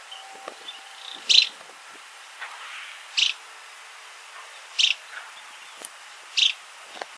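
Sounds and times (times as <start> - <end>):
bird chipping calls: 0.0 - 1.6, 3.1 - 3.4, 4.4 - 6.6
background hiss: 0.0 - 7.1.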